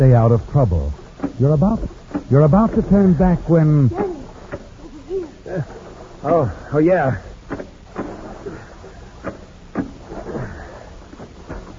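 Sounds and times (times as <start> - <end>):
speech: 0.0 - 4.1, 5.5 - 7.3
small boat pulling in through water at a cove: 0.0 - 11.7
sharp knocks and thumps against the boat hull: 1.2 - 3.3, 7.4 - 8.3, 9.2 - 11.7.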